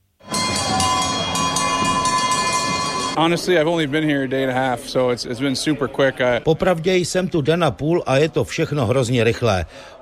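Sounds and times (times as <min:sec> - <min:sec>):
cowbells ringing in ice hockey stadium: 0:00.2 - 0:03.2
speech: 0:03.2 - 0:10.0.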